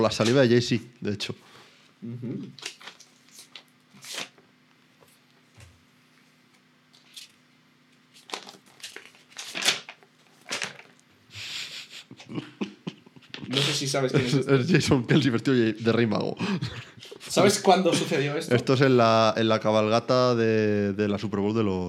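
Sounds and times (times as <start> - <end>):
speech: 0.0 - 2.8, 13.8 - 21.8
sealed envelope torn open: 2.5 - 4.4, 8.1 - 11.0
laughter: 11.4 - 15.3.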